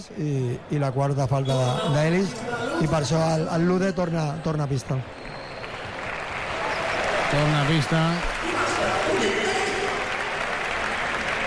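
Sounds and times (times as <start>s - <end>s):
speech: 0.0s - 5.2s, 7.3s - 9.4s
crowd applauding at a basketball game: 4.8s - 11.4s.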